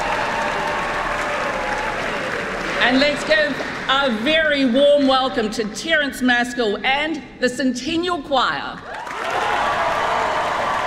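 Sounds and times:
concert audience applause after a trumpet solo: 0.0s - 4.2s, 8.9s - 10.8s
speech: 2.8s - 8.9s.

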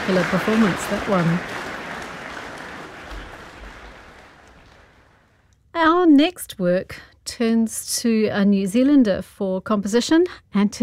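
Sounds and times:
concert audience applause: 0.0s - 5.2s
speech: 0.1s - 1.6s, 6.2s - 10.8s.

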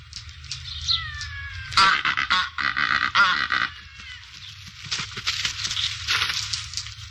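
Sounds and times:
low steady rumble: 0.0s - 7.1s
Cape Barren goose harsh rasping honks and grunts: 1.7s - 4.4s.

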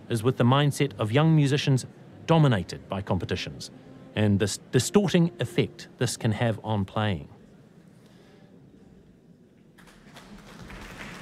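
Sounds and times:
speech: 0.1s - 7.4s
audience applause: 9.8s - 11.2s.

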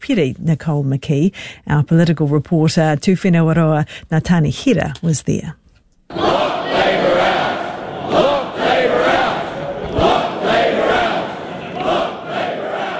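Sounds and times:
speech: 0.0s - 6.6s
ACT Party supporters chanting the party's battle cry at a rally: 6.1s - 12.9s.

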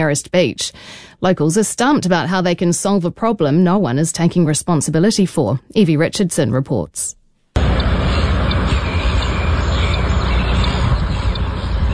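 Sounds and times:
speech: 0.0s - 7.2s
flock of seagulls squawking: 7.6s - 11.9s.

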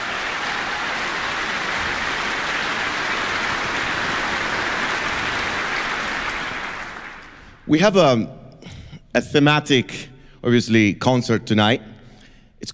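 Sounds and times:
audience applause for orchestra: 0.0s - 7.6s
speech: 7.7s - 8.4s, 9.2s - 11.9s.

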